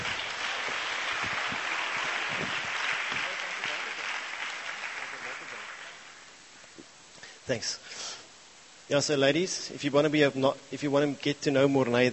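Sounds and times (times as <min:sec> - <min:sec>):
audience clapping: 0:00.0 - 0:06.3
speech: 0:07.5 - 0:08.0, 0:08.9 - 0:12.1.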